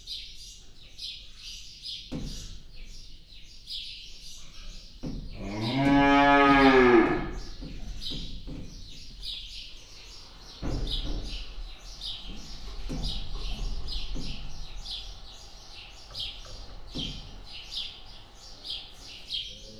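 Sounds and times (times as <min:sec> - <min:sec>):
five-month-old aurochs bull in Hortobágy National Park: 0:05.4 - 0:07.6.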